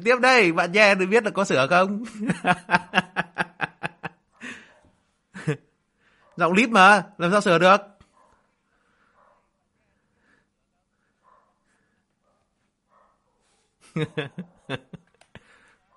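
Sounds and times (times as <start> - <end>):
speech: 0.0 - 3.3, 6.4 - 7.9, 14.0 - 15.0
laughter: 1.9 - 4.7, 5.4 - 5.6, 13.8 - 15.7
dog barking outside: 4.3 - 5.0, 6.1 - 6.5, 8.0 - 9.7, 11.1 - 14.9.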